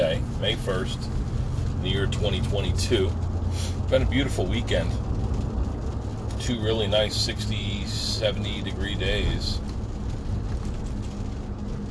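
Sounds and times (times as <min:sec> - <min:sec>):
rain pattering on a car windshield: 0:00.0 - 0:11.8
speech: 0:00.4 - 0:05.1, 0:06.4 - 0:09.7.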